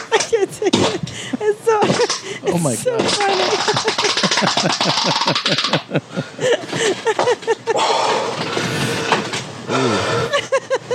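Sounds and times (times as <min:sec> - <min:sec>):
laughter: 0:00.1 - 0:08.0, 0:09.7 - 0:10.9
heavy straining breathing: 0:01.0 - 0:01.4, 0:02.1 - 0:03.0, 0:06.0 - 0:10.5
speech: 0:02.5 - 0:08.5.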